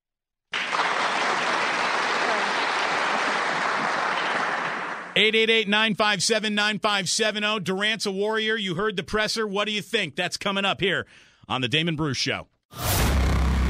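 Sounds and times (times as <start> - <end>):
crowd applause: 0.5 - 5.2
speech: 5.2 - 12.9.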